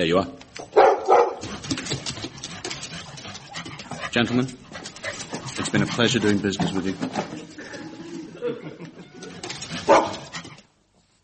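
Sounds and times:
speech: 0.0s - 0.4s, 4.2s - 4.6s, 5.6s - 7.3s
dog barking: 0.7s - 1.5s, 9.8s - 10.3s
laughter: 7.2s - 9.8s.

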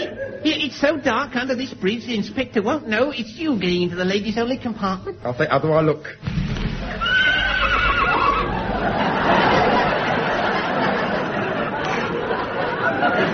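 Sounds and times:
laughter: 0.0s - 1.0s, 6.8s - 13.3s
steady wash of noise: 0.0s - 13.3s
speech: 0.4s - 6.4s
horse whinnying: 7.0s - 8.6s.

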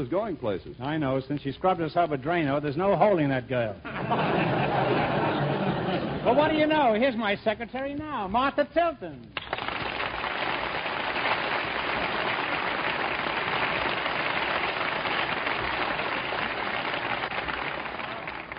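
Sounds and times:
speech: 0.0s - 9.4s
laughter: 3.8s - 6.5s
audience applause: 9.4s - 18.5s.

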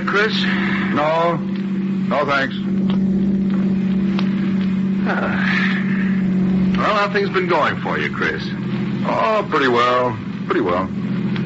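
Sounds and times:
speech: 0.0s - 2.9s, 5.1s - 5.8s, 6.8s - 11.0s
car driving down the coast road toward New York: 0.0s - 11.4s.

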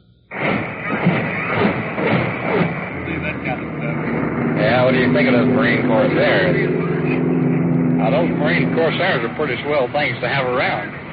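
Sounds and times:
naval big guns bombarding hills: 0.3s - 7.2s
speech: 5.0s - 6.8s, 8.0s - 11.0s.

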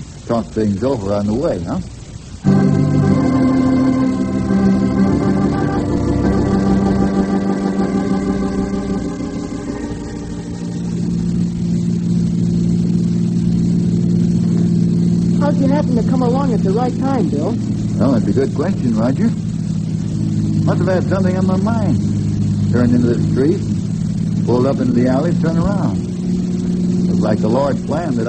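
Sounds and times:
car engine starting: 0.0s - 28.2s
speech: 0.3s - 2.0s, 15.8s - 19.5s, 20.7s - 23.7s, 24.5s - 26.0s, 27.2s - 28.2s.

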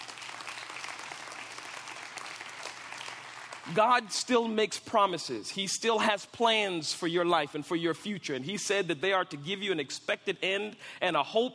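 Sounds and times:
audience applause: 0.0s - 3.9s
speech: 3.7s - 11.5s.

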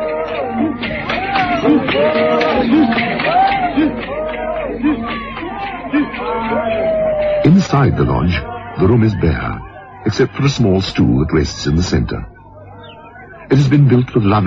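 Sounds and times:
laughter: 0.0s - 13.9s
jubilant crowd in procession: 0.0s - 14.4s
speech: 7.7s - 12.3s, 13.5s - 14.4s.

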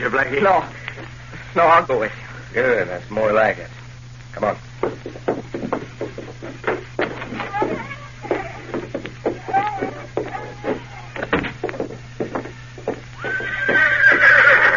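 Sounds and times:
speech: 0.0s - 5.8s
horse hooves clip-clopping: 4.8s - 14.7s
horse neighing: 13.2s - 14.7s.

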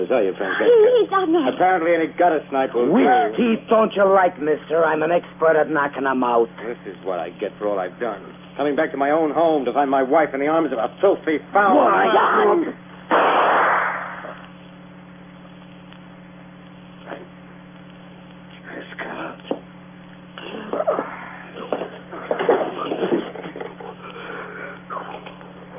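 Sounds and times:
speech: 0.0s - 13.4s
quiet hum: 0.0s - 25.7s
gunshot: 13.1s - 14.4s
breathy sniffing: 20.5s - 25.3s.

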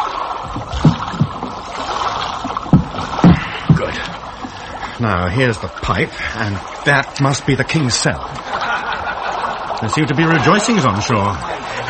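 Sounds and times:
water washing: 0.0s - 11.8s
small wooden boat scraping and knocking as it is hauled: 0.1s - 11.8s
wooden boat hull thuds: 0.4s - 5.0s
speech: 5.0s - 8.6s, 9.8s - 11.8s
laughter: 8.2s - 11.8s.

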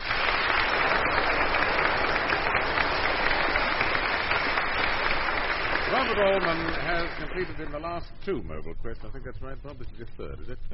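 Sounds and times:
audience applause for a contestant: 0.0s - 8.0s
speech: 6.0s - 10.7s.

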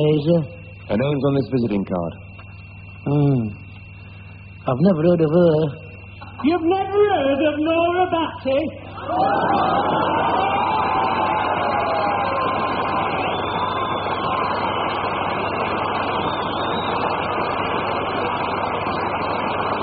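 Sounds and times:
speech: 0.0s - 2.3s, 3.0s - 3.6s, 4.6s - 5.8s, 6.4s - 10.9s
crowd cheering with whistles and whoops: 8.8s - 19.8s
audience applause: 9.0s - 16.8s.

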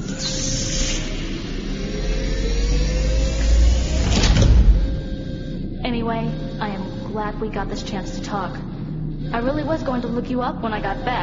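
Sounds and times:
tone climbing in pitch: 0.0s - 8.1s
spaceship airlock inner hatch mechanical hum: 0.0s - 11.2s
speech: 6.1s - 11.2s.

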